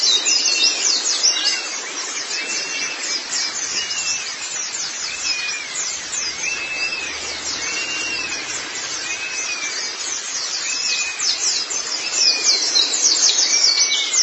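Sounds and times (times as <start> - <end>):
white-eye twittering chatter: 0.1 - 14.1
lower arched whistled note: 2.3 - 12.4.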